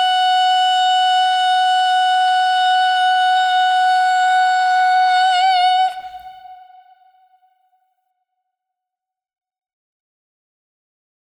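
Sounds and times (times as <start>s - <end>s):
tenor singing alone: 0.0s - 7.3s.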